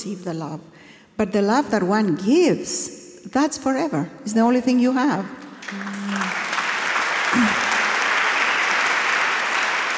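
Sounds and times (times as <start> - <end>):
speech: 0.0 - 6.4, 7.3 - 7.6
audience clapping: 5.6 - 9.9.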